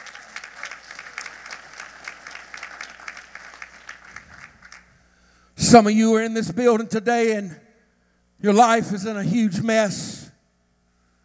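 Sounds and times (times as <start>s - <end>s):
audience clapping: 0.0s - 5.1s
speech: 5.7s - 7.6s, 8.4s - 10.2s.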